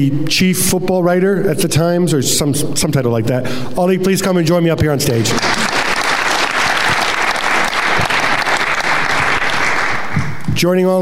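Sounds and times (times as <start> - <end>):
speech: 0.0 - 5.7, 10.6 - 10.9
live audience applause: 5.2 - 10.4.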